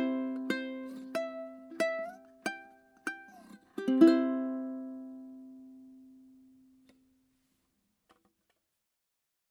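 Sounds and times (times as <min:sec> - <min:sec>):
ukulele: 0:00.0 - 0:07.1.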